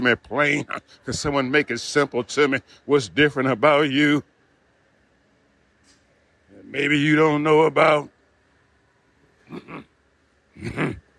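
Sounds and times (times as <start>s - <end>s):
speech: 0.0s - 4.3s, 6.7s - 8.1s, 9.5s - 9.9s, 10.6s - 11.0s
person clearing throat: 9.4s - 11.1s.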